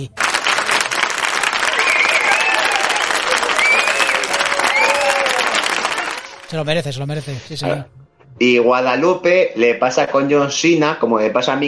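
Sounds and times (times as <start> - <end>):
speech: 0.0 - 0.2, 6.5 - 11.6
crowd applause sound effect: 0.0 - 6.5
faint whistles and cheers: 1.6 - 6.3.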